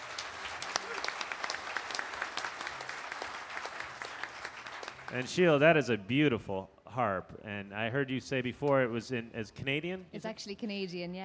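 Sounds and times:
audience applause at a folk festival string workshop: 0.0 - 5.6
speech: 5.1 - 11.2.

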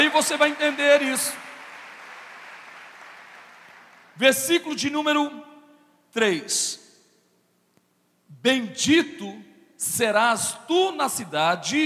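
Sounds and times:
audience applause: 0.0 - 4.2
speech: 0.1 - 1.5, 4.2 - 5.5, 6.1 - 6.8, 8.4 - 11.8.

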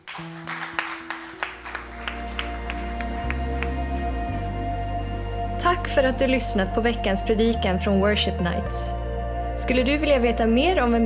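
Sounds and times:
audience applause: 0.0 - 4.2
sustained keyboard chords: 0.0 - 11.0
speech: 5.6 - 9.0, 9.6 - 11.0.

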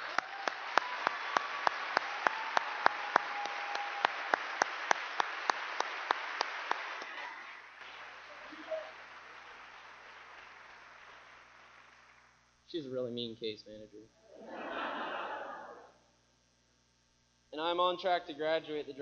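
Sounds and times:
audience applause: 0.0 - 12.4
speech: 12.7 - 14.6, 17.6 - 18.9
laughter: 14.3 - 16.0.

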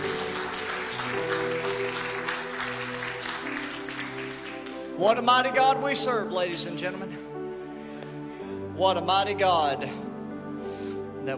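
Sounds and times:
audience hand clapping: 0.0 - 5.3
speech: 5.0 - 7.2, 8.8 - 10.0.

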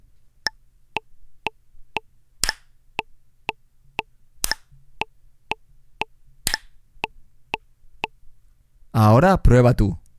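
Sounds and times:
metronome ticking four beats: 0.4 - 8.2
speech: 9.0 - 10.0.

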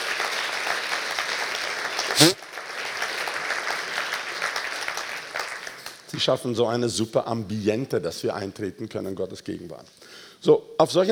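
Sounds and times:
applause: 0.0 - 6.3
speech: 2.2 - 2.4, 6.2 - 11.1.

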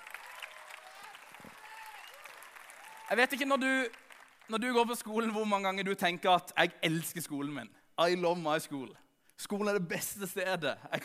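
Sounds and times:
audience applause: 0.0 - 4.5
speech: 3.1 - 11.0.

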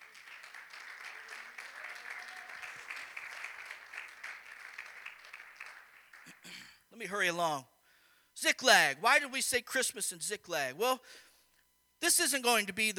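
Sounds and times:
crowd clapping: 0.0 - 6.7
speech: 7.0 - 7.7, 8.4 - 11.3, 12.0 - 12.9.

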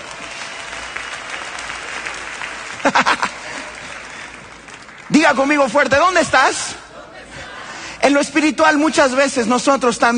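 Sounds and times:
audience applause: 0.0 - 5.6
laughter: 2.7 - 4.4
speech: 5.2 - 6.8, 8.0 - 10.1.

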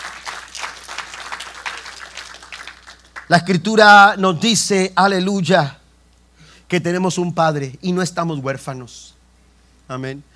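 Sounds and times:
audience applause: 0.0 - 3.4
speech: 3.3 - 5.8, 6.7 - 9.2, 9.9 - 10.3.

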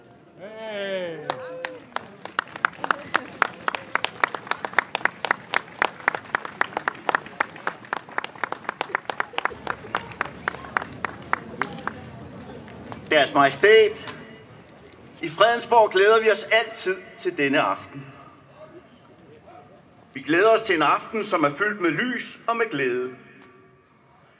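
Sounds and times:
crowd applauding outdoors: 1.2 - 13.0
speech: 13.2 - 14.1, 15.2 - 18.1, 20.3 - 23.2.

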